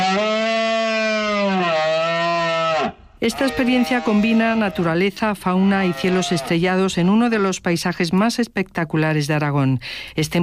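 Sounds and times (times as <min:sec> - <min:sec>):
red deer stag bellowing during the rut: 0:00.0 - 0:05.0, 0:05.6 - 0:06.6
speech: 0:03.2 - 0:10.4.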